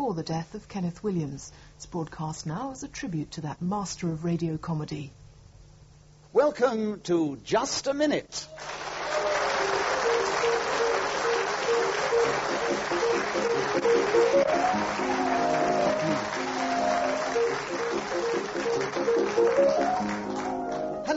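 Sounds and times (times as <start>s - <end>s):
speech: 0.1s - 5.2s, 6.3s - 8.8s
applause: 8.5s - 21.1s
piano waltz as theme tune of a comedy panel game: 9.6s - 21.1s.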